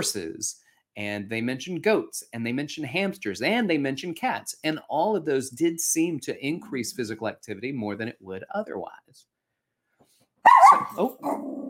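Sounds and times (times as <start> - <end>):
speech: 0.0 - 9.3, 10.5 - 11.6
dog barking: 10.4 - 11.4.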